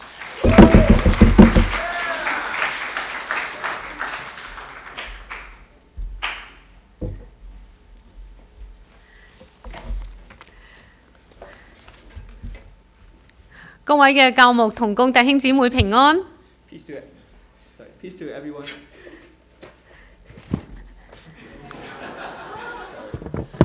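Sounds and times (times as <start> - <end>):
audience applauding: 0.0 - 6.6
speech: 14.0 - 17.1, 18.0 - 18.9
laughter: 21.2 - 23.6.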